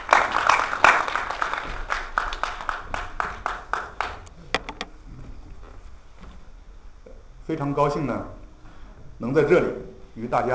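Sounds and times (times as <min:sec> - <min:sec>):
warm audience applause: 0:00.0 - 0:04.3
speech: 0:07.5 - 0:08.4, 0:09.2 - 0:10.5.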